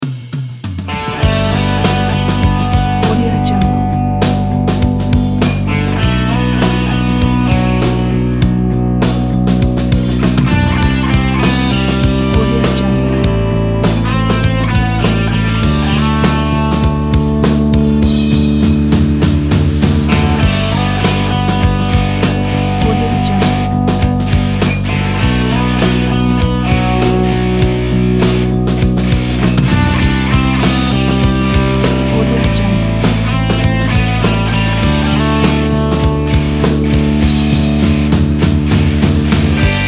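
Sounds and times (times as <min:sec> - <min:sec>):
classic rock music: 0:00.0 - 0:39.8.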